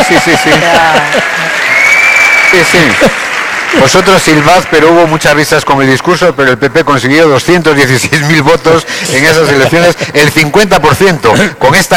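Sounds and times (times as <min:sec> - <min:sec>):
audience applause during a political speech: 0:00.0 - 0:05.5
speech: 0:00.1 - 0:01.7, 0:02.5 - 0:11.9.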